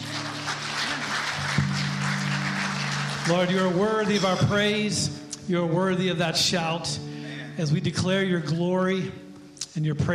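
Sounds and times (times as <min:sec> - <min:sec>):
audience applause: 0:00.0 - 0:04.4
speech: 0:03.3 - 0:09.2, 0:09.8 - 0:10.1.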